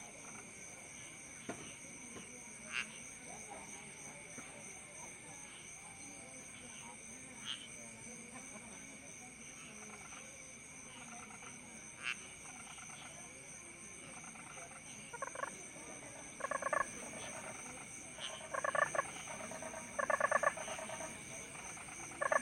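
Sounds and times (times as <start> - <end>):
toads calling in chorus: 15.1 - 15.6, 16.3 - 22.4.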